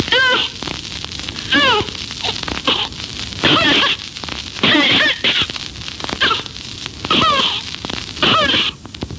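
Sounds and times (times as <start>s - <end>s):
child with cystic fibrosis coughing: 0.1s - 0.5s, 1.5s - 1.9s, 2.7s - 4.0s, 4.6s - 5.5s, 6.2s - 6.5s, 7.1s - 7.7s, 8.2s - 8.8s
child with cystic fibrosis crying: 1.5s - 2.0s.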